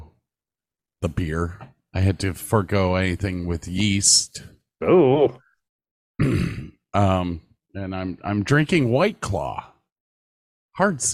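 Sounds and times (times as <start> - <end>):
speech: 1.0 - 5.4, 6.2 - 9.7, 10.8 - 11.1
loud low rumbling burp: 6.2 - 6.9.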